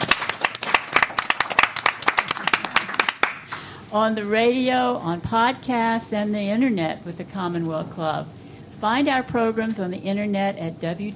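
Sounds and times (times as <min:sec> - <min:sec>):
audience applauding at an evening talk event: 0:00.0 - 0:03.6
speech: 0:03.9 - 0:11.1.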